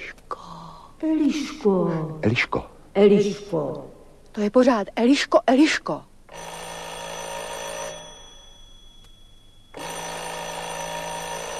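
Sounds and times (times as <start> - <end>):
speech: 1.0 - 6.5
doorbell ringing: 6.3 - 11.5.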